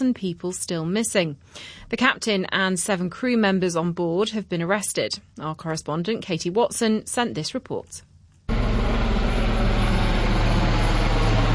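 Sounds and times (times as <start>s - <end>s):
speech: 0.0s - 8.1s
helicopter engine and rotors during sea search: 8.5s - 11.5s.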